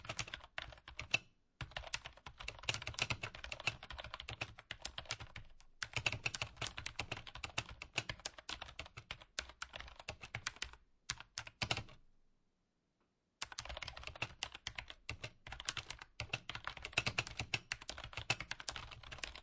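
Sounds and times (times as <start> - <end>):
office computer keyboard typing, medium fast: 0.0 - 12.0, 13.4 - 19.4.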